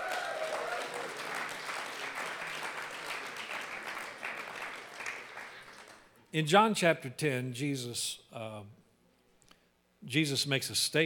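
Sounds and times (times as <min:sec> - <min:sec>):
audience clapping: 0:00.0 - 0:06.2
speech: 0:06.3 - 0:08.8, 0:10.0 - 0:11.0.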